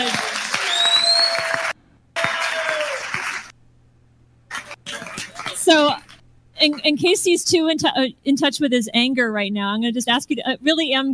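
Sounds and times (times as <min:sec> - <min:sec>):
audience applause: 0:00.0 - 0:03.5, 0:04.5 - 0:06.2
speech: 0:06.6 - 0:11.1.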